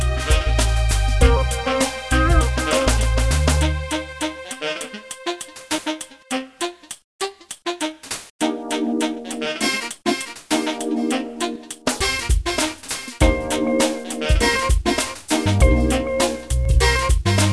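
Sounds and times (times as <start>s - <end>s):
game music on a handheld console: 0.0s - 0.6s, 1.2s - 6.3s, 8.4s - 17.5s.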